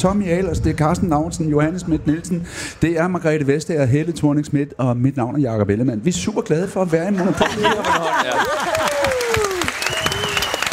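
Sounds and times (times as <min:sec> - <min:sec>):
speech: 0:00.0 - 0:09.0
laughter: 0:06.9 - 0:09.8
audience clapping: 0:08.0 - 0:10.7
voices and a high sliding whoop: 0:08.3 - 0:10.7.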